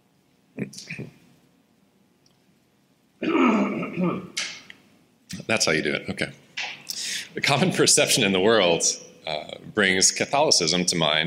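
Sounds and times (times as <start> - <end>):
hacking coughs: 3.2 - 4.4
throat clearing: 3.2 - 4.4
speech: 4.0 - 4.4, 5.4 - 6.4, 7.4 - 11.2.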